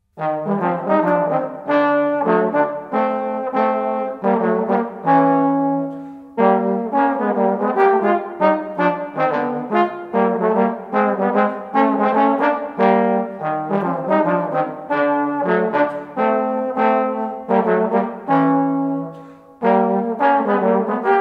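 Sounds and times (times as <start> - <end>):
jazz duet: 0.1 - 21.1.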